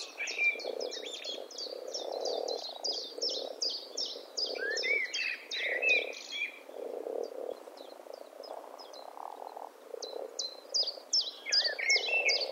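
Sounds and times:
common blackbird sharp calls: 0:00.0 - 0:06.6, 0:10.0 - 0:12.5.

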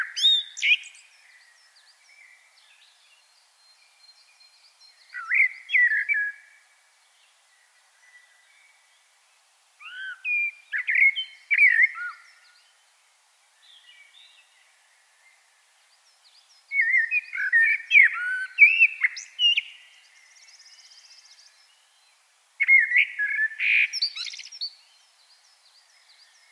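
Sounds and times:
common blackbird singing: 0:00.0 - 0:06.6, 0:09.8 - 0:12.8, 0:16.1 - 0:26.5
faint background birds: 0:00.0 - 0:26.5.

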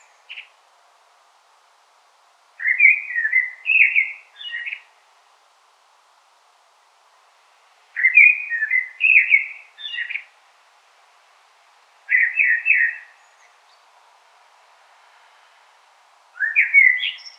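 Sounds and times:
soft hiss: 0:00.0 - 0:17.3
common blackbird singing: 0:02.6 - 0:04.9, 0:08.0 - 0:10.3, 0:12.1 - 0:13.8, 0:16.4 - 0:17.3.

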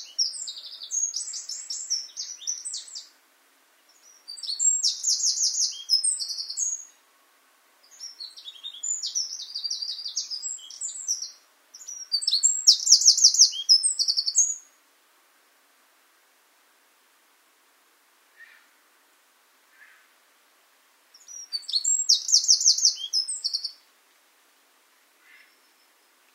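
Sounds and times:
Eurasian wren singing: 0:00.0 - 0:03.1, 0:03.9 - 0:07.0, 0:07.8 - 0:14.8, 0:21.1 - 0:23.8.

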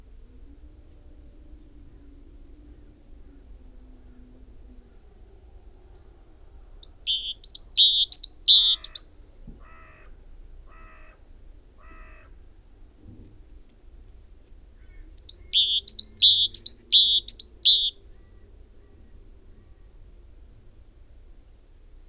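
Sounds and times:
great tit calling a two-part phrase: 0:06.7 - 0:09.1, 0:15.2 - 0:18.0.

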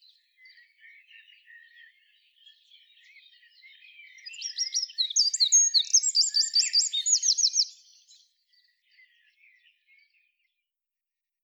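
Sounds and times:
Eurasian wren song: 0:04.4 - 0:07.9.

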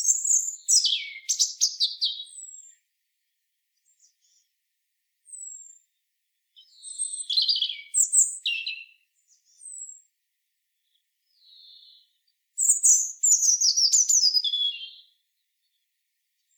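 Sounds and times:
European robin song: 0:00.0 - 0:02.8, 0:06.5 - 0:10.1, 0:10.8 - 0:16.5.

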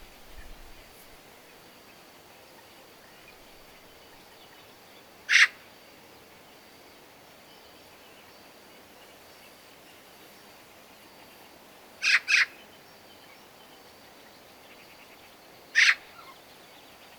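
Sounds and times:
Eurasian magpie rasping calls: 0:15.8 - 0:16.0.

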